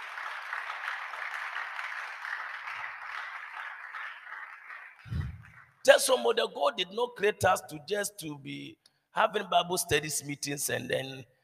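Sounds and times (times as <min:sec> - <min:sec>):
audience clapping: 0:00.0 - 0:05.8
speech: 0:05.9 - 0:11.4.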